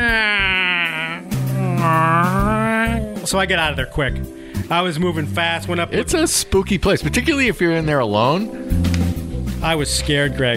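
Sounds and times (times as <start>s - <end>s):
voice imitating eerie creaking of cedar trees rubbing together: 0.0s - 3.4s
speech: 3.3s - 8.9s, 9.6s - 10.5s.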